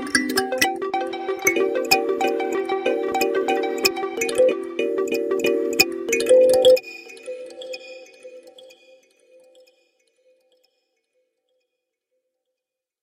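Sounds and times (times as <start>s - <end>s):
kalimba song: 0.0s - 8.0s.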